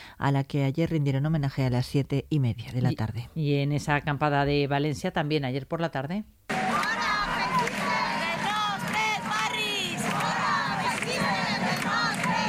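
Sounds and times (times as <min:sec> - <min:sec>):
speech: 0:00.2 - 0:06.4
large crowd of protesters shouting and chanting: 0:06.5 - 0:12.4.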